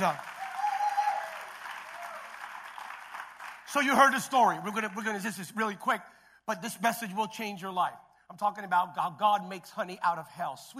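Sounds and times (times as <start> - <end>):
speech: 0.0 - 0.3, 3.7 - 10.7
crowd applause: 0.0 - 4.2.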